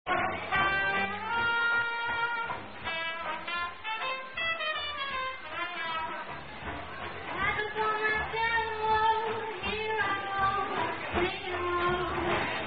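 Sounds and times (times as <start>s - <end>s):
jazz combo playing: 0.1s - 12.6s.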